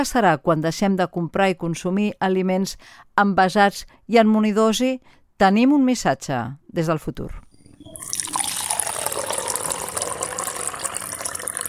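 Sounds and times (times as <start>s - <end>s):
speech: 0.0s - 7.4s
freshly made coffee being poured: 7.6s - 11.6s.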